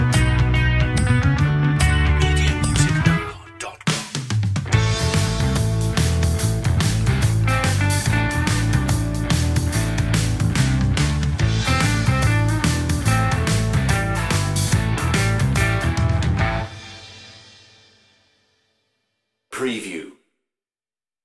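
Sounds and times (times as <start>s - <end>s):
rusty gritty southern rock music: 0.0s - 18.4s.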